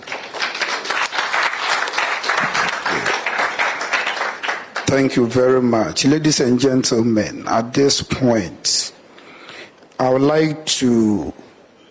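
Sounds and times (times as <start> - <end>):
audience clapping: 0.0 - 5.3
speech: 4.9 - 9.0, 10.0 - 11.4.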